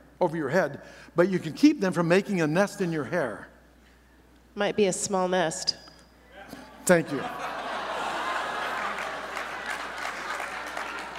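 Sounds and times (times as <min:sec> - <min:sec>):
speech: 0:00.2 - 0:03.5, 0:04.6 - 0:05.8, 0:06.9 - 0:07.5
laughter: 0:06.4 - 0:11.1
audience clapping: 0:07.5 - 0:11.1.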